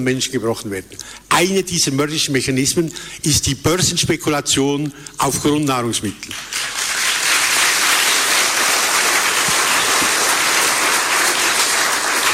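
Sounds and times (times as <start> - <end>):
speech: 0.0 - 6.8
audience applause: 6.4 - 12.3.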